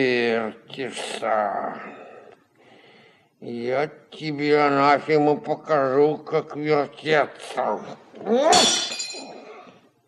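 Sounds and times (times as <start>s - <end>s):
speech: 0.0s - 2.1s, 3.4s - 9.2s
glass carafe breaking: 8.5s - 9.4s.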